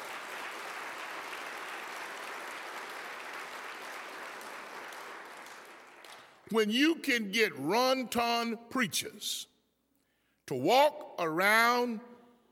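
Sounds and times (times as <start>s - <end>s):
audience applause: 0.0s - 6.4s
speech: 6.5s - 9.5s, 10.5s - 12.1s.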